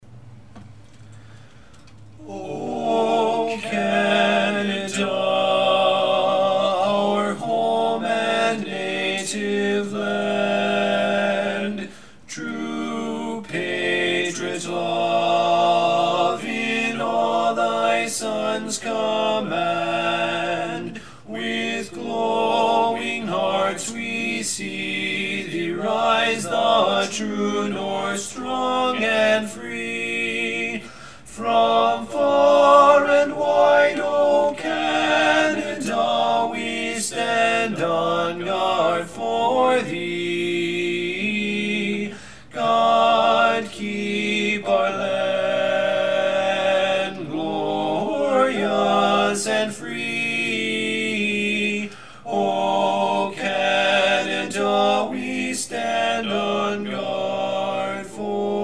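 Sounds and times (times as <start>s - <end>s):
baritone singing national anthem: 2.2s - 58.6s.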